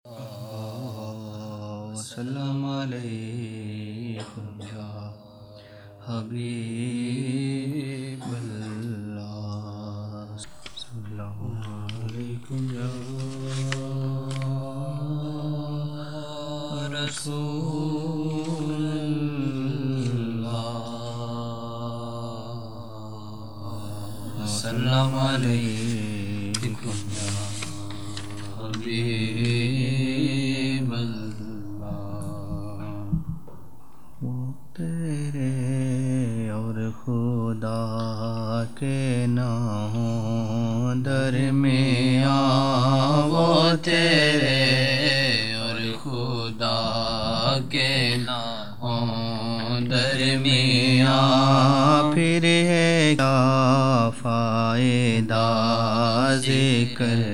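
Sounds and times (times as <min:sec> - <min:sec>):
naat devotional singing: 0:00.0 - 0:57.3.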